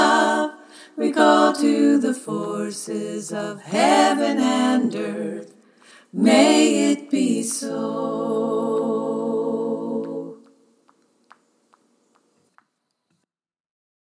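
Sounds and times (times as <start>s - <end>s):
choir singing all parts: 0.0s - 10.6s.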